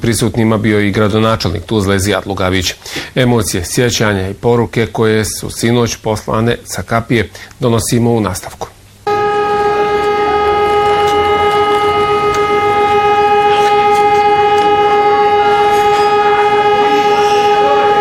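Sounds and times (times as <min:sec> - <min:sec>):
speech: 0:00.0 - 0:08.8
memorial siren in Tuzla: 0:09.1 - 0:18.0.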